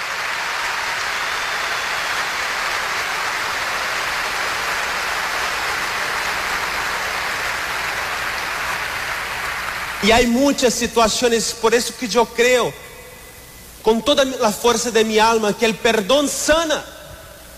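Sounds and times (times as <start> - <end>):
audience applauding: 0.0 - 10.3
speech: 10.0 - 12.9, 13.8 - 16.9.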